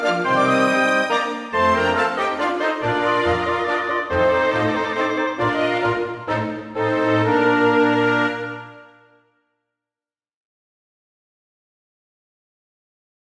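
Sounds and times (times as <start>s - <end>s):
chamber orchestra minuet: 0.0s - 9.2s.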